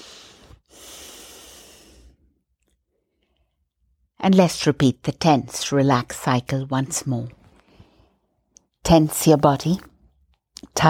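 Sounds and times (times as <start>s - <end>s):
deep breathing during a guided tense-and-relax relaxation exercise: 0.0s - 2.4s
speech: 4.2s - 7.4s, 8.9s - 9.9s, 10.6s - 10.8s.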